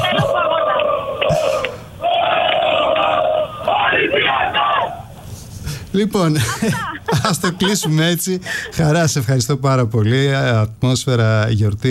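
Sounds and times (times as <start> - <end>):
laughter: 0.0 - 4.8, 6.3 - 8.9
crowd shouting: 0.0 - 5.2
speech: 6.0 - 11.8.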